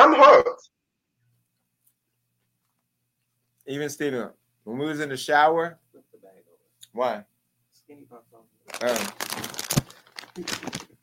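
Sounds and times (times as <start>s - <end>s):
speech: 3.7s - 7.3s, 7.9s - 9.6s, 10.4s - 10.8s
popcorn bag crinkling: 8.7s - 11.0s.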